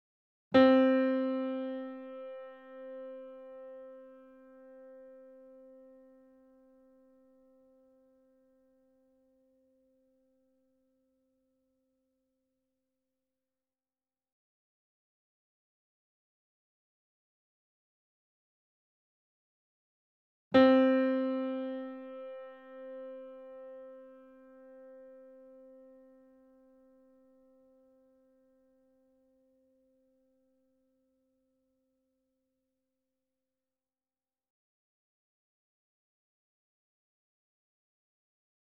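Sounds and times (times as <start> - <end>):
grand piano and sample piano C4 E4 A4 chord: 0.6 - 7.3, 20.6 - 27.8.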